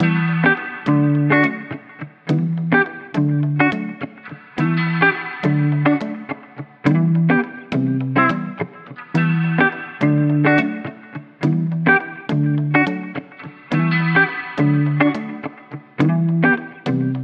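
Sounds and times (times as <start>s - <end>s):
pop song starter in E minor at 105 BPM: 0.0s - 17.2s.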